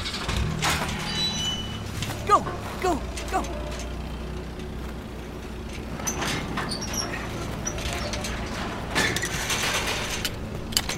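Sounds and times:
gate mechanism rattling while being locked: 0.1 - 10.9
speech: 2.3 - 3.9.

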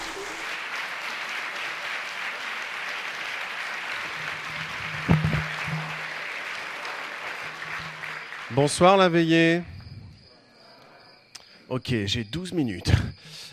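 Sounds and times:
audience applauding loudly: 0.0 - 9.3
speech: 8.5 - 9.7, 11.7 - 13.4.

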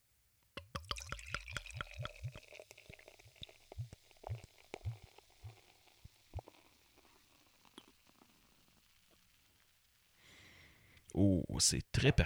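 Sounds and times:
IPA beer poured from a freshly opened bottle into a glass: 0.6 - 10.2
speech: 11.4 - 12.2.

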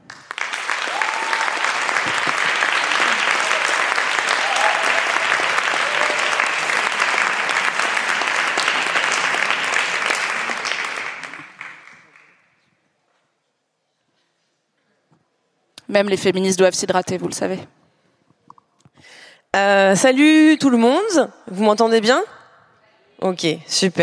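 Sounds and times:
audience applause: 0.0 - 12.4
speech: 15.9 - 17.8, 19.6 - 22.4, 23.2 - 24.0.

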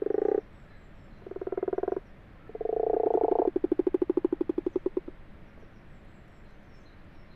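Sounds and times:
common frogs purring: 0.0 - 0.5, 1.2 - 5.2.

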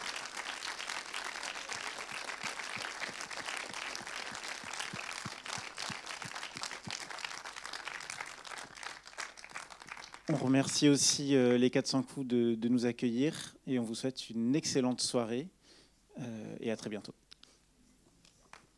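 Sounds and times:
audience applause: 0.0 - 10.6
speech: 10.3 - 15.6, 16.2 - 17.2.

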